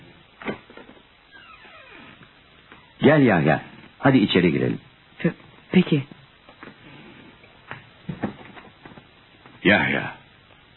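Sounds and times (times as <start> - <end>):
door being opened: 0.4 - 3.0
speech: 3.0 - 6.2.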